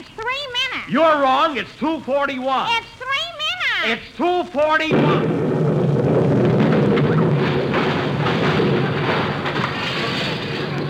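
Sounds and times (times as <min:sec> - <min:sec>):
speech: 0:00.9 - 0:03.0, 0:03.8 - 0:05.4
time bomb explosion roar: 0:04.9 - 0:10.8.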